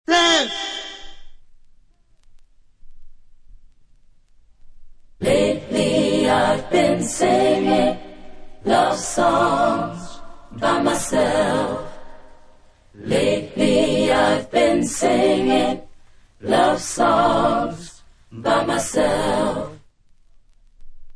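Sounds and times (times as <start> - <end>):
a cappella singing: 5.2 - 19.9.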